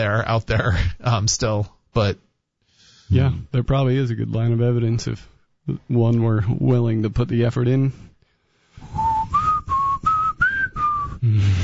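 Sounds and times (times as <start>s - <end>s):
speech: 0.0s - 2.3s, 3.1s - 8.1s, 11.2s - 11.6s
person whistling a tune: 8.8s - 11.6s.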